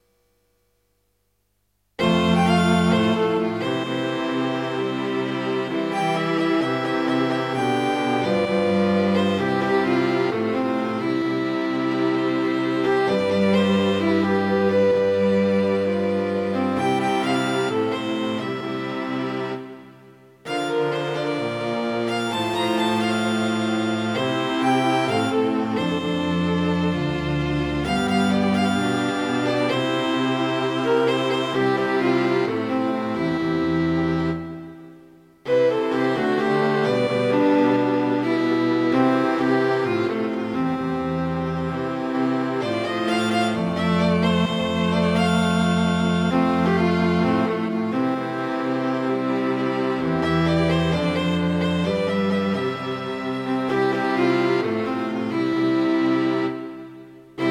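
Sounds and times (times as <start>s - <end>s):
quartet playing: 2.0s - 19.8s, 20.5s - 34.8s, 35.5s - 56.7s.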